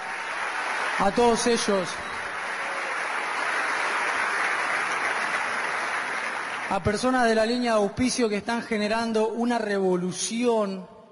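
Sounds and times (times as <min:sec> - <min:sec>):
audience applause: 0:00.0 - 0:07.3
speech: 0:01.0 - 0:02.1, 0:06.7 - 0:10.9.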